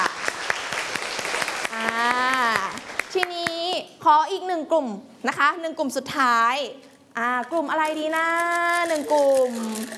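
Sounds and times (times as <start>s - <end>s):
classroom applause: 0.0s - 3.3s
speech: 4.1s - 9.9s.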